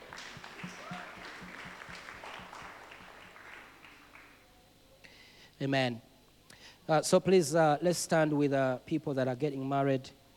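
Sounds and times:
faint rhythmic thump: 0:00.0 - 0:03.4
audience applause: 0:00.0 - 0:04.4
speech: 0:05.6 - 0:06.1, 0:06.9 - 0:10.2.

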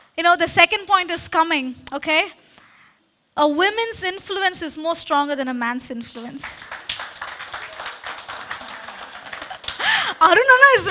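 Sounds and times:
speech: 0:00.2 - 0:02.4, 0:03.4 - 0:06.8, 0:10.2 - 0:10.8
audience member clapping: 0:06.4 - 0:10.0.

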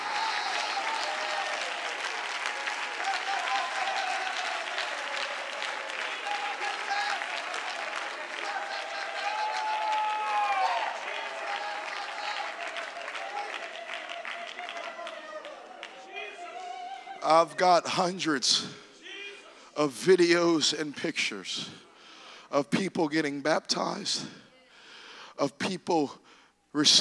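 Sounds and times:
audience clapping hands: 0:00.0 - 0:16.5
speech: 0:17.3 - 0:18.8, 0:19.8 - 0:21.9, 0:22.5 - 0:24.4, 0:25.4 - 0:26.2, 0:26.8 - 0:26.9.

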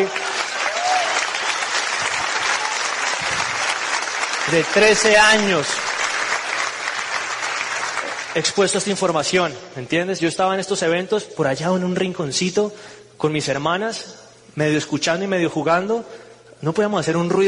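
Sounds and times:
speech: 0:00.0 - 0:00.2, 0:04.5 - 0:05.9, 0:08.4 - 0:17.4
audience applause: 0:00.0 - 0:08.9.

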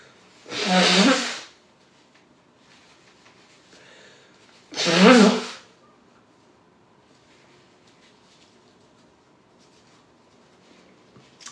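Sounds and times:
nose blowing: 0:00.4 - 0:01.6, 0:04.7 - 0:05.7.

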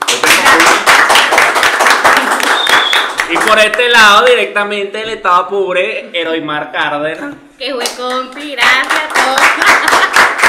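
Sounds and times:
crowd clapping: 0:00.0 - 0:04.2, 0:07.8 - 0:10.4
speech: 0:03.5 - 0:10.2.

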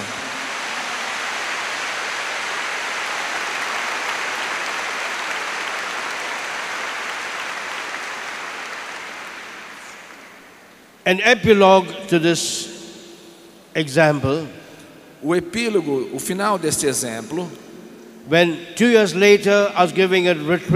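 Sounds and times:
audience applause: 0:00.0 - 0:10.7
speech: 0:11.1 - 0:12.7, 0:13.8 - 0:14.6, 0:15.2 - 0:17.7, 0:18.3 - 0:20.7.

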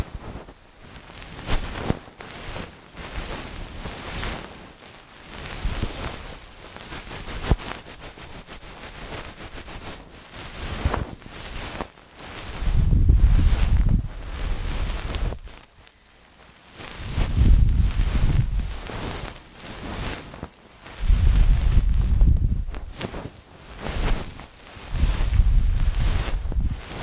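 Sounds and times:
ear cleaning with a feather-tipped pick, soft scratchy brushing: 0:00.0 - 0:27.0
deep rubbing from ear massage: 0:12.5 - 0:15.6, 0:17.0 - 0:20.2, 0:21.0 - 0:27.0.

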